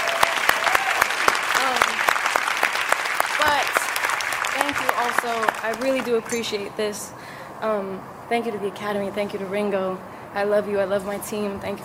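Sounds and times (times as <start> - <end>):
audience applause: 0.0 - 6.4
speech: 5.0 - 11.8.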